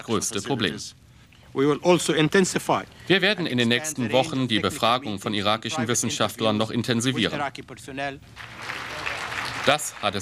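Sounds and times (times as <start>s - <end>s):
speech: 0.0s - 8.8s, 9.6s - 10.2s
applause in the Security Council: 8.4s - 10.2s.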